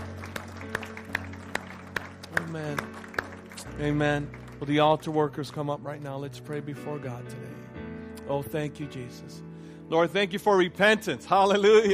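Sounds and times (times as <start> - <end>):
audience clapping hands: 0.0 - 6.7
speech: 2.5 - 2.9, 3.8 - 7.6, 8.3 - 11.9.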